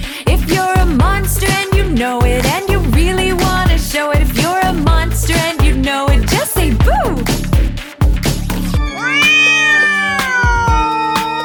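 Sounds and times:
bouncy children's song music with a thumping beat: 0:00.0 - 0:11.4
black cat meowing: 0:08.8 - 0:11.4.

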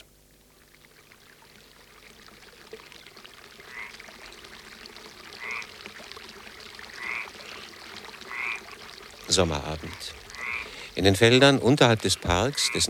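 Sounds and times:
frogs croaking at a water basin near Puy-Ricard, Provence: 0:00.0 - 0:12.8
trickling water at a water basin: 0:00.0 - 0:12.8
insect-like hiss on a summer evening: 0:00.6 - 0:12.8
speech: 0:09.4 - 0:10.2, 0:11.0 - 0:12.8.

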